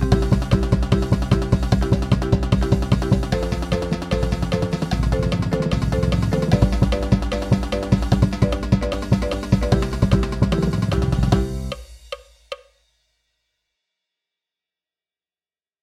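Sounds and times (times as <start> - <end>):
count-off: 0.0 - 11.8
marching percussion at 150 BPM: 0.0 - 12.6.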